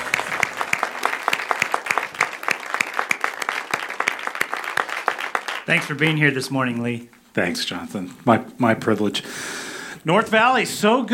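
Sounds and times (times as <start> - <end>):
church congregation clapping to welcome a guest speaker: 0.0 - 7.0
speech: 5.7 - 11.1.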